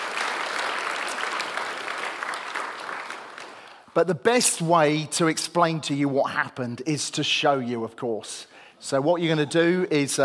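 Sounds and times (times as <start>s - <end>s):
audience clapping: 0.0s - 3.9s
speech: 4.0s - 10.2s.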